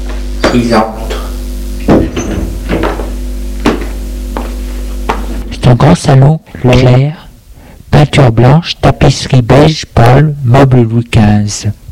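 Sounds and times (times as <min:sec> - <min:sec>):
speech: 0:00.5 - 0:01.2, 0:05.7 - 0:07.2, 0:08.0 - 0:11.8
knocking on a door: 0:01.9 - 0:03.1.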